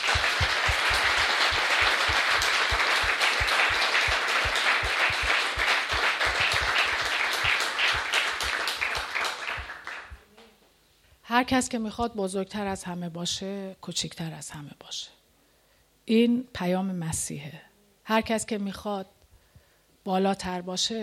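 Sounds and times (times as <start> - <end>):
congregation applauding: 0.0 - 10.2
speech: 11.4 - 15.2, 16.0 - 19.2, 20.0 - 21.0.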